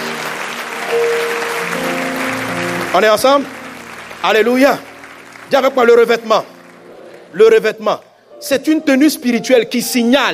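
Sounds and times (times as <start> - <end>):
church congregation applauding: 0.0 - 8.1
speech: 2.9 - 3.6, 4.2 - 4.9, 5.5 - 6.5, 7.3 - 10.3.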